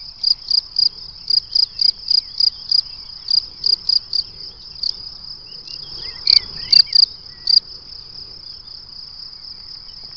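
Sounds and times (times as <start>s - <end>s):
cricket chirping: 0.0s - 10.1s.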